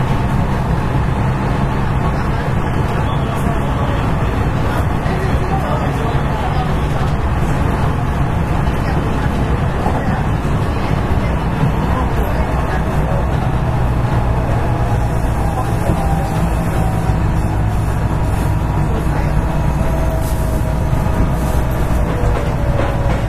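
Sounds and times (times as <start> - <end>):
murmured voices: 0.0 - 23.2
vehicle rumble on the stretch from Amagasaki to Kobe: 0.0 - 23.2.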